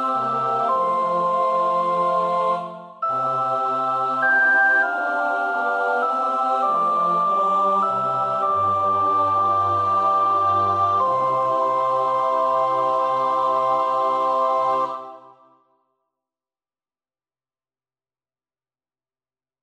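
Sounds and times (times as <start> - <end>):
soprano singing: 0.0 - 15.4.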